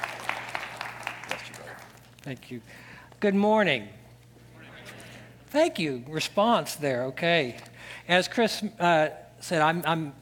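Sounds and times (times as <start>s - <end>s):
soft audience clapping: 0.0s - 2.2s
low hum: 0.0s - 10.2s
speech: 2.3s - 4.0s, 5.5s - 10.2s.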